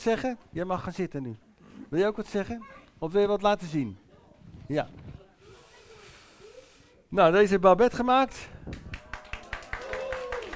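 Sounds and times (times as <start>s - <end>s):
speech: 0.0s - 4.0s, 4.7s - 5.1s, 7.1s - 8.8s
faint voice murmuring: 4.0s - 7.1s
applause: 8.7s - 10.5s.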